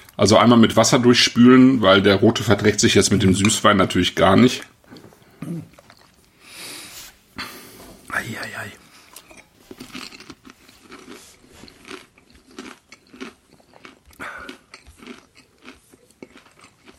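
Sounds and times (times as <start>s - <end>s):
speech: 0.2s - 4.8s
crunchy snack being chewed: 5.7s - 6.3s, 9.1s - 16.9s.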